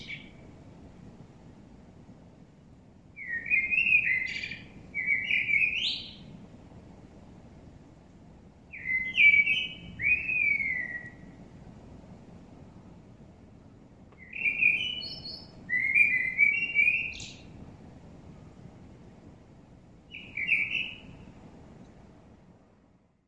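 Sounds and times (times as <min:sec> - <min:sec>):
common blackbird singing: 0:00.0 - 0:00.4, 0:03.2 - 0:06.3, 0:08.7 - 0:11.3, 0:14.2 - 0:17.5, 0:20.1 - 0:21.1
steady low hiss: 0:00.0 - 0:23.2.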